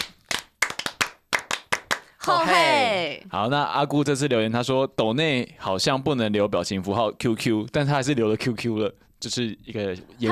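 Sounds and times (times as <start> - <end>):
rhythmic encouragement hand clapping: 0.0 - 2.4
speech: 2.3 - 10.3.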